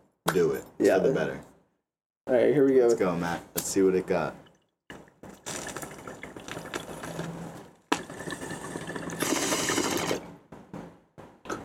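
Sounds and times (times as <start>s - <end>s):
speech: 0.3s - 1.5s, 2.3s - 4.4s
bong water bubbling during a hit: 4.3s - 10.2s.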